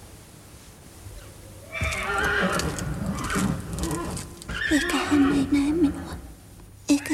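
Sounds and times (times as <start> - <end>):
horses whinnying: 1.6 - 5.5
hooves clopping: 1.7 - 4.7.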